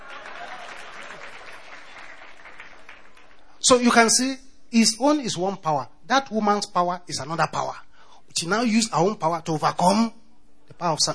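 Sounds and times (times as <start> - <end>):
clapping: 0.0 - 3.4
speech: 3.7 - 11.1.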